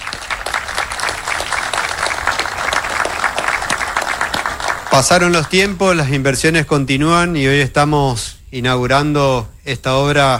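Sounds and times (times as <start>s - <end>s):
audience applause: 0.0s - 6.0s
speech: 5.0s - 10.3s.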